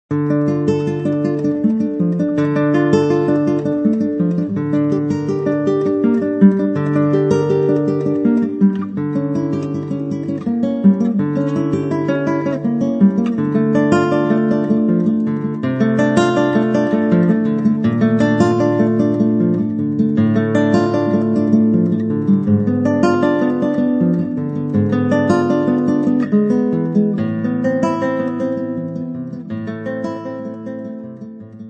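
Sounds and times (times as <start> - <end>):
solo guitar: 0.0 - 31.6.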